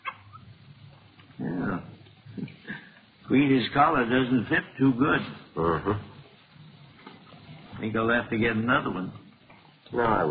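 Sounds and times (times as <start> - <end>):
young female puppy yipping and barking: 0.0 - 0.5
speech: 3.3 - 6.1, 7.8 - 9.2, 9.9 - 10.3.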